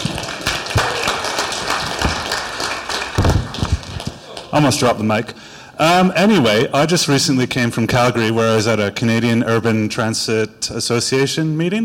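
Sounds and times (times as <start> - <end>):
audience applause: 0.0 - 4.9
speech: 4.6 - 11.8.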